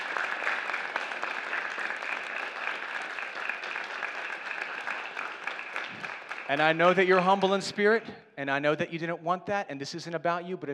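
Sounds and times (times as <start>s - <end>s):
audience applauding: 0.0s - 7.5s
speech: 6.5s - 10.7s.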